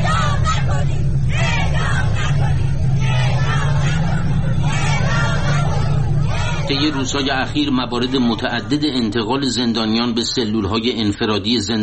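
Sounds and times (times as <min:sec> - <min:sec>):
protesters shouting against death penalty: 0:00.0 - 0:09.0
speech: 0:06.8 - 0:11.8.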